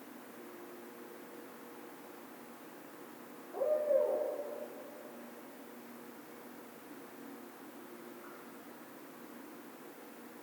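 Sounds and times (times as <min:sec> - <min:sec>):
barred owl hoot: 0:03.5 - 0:05.5.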